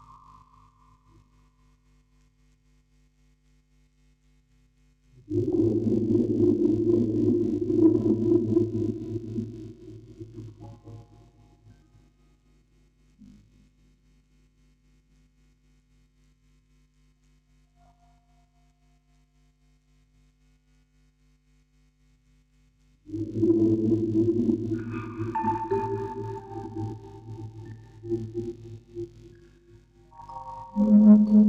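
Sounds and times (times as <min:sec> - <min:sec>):
vocoder voice: 0:05.3 - 0:10.8, 0:23.2 - 0:28.4
quartet of music boxes recorded on tape: 0:30.2 - 0:31.3.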